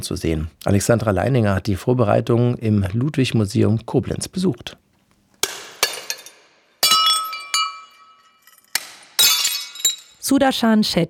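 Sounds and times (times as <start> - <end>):
speech: 0.0 - 4.8, 10.3 - 11.0
hammer smashing porcelain cups and plates: 5.4 - 10.2.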